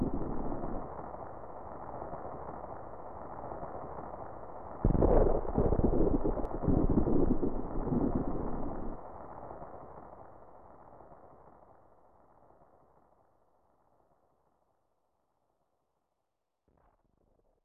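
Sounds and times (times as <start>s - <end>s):
rainstorm: 0.0s - 10.8s.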